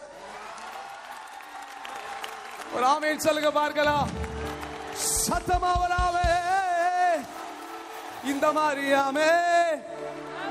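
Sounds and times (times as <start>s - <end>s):
audience clapping hands: 0.0s - 10.4s
speech: 2.7s - 4.2s, 5.0s - 6.3s, 8.2s - 9.9s.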